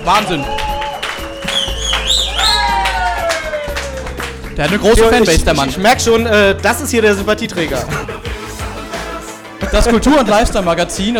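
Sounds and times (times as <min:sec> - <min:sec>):
speech: 0:00.0 - 0:00.6, 0:04.6 - 0:08.2, 0:09.6 - 0:11.1
audience applause: 0:00.0 - 0:04.6.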